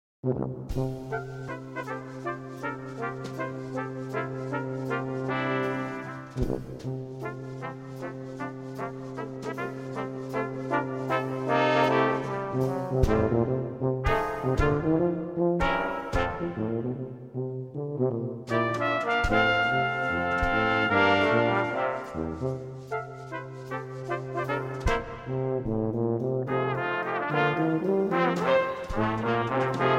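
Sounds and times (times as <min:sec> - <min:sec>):
brass quintet: 0:00.2 - 0:29.9.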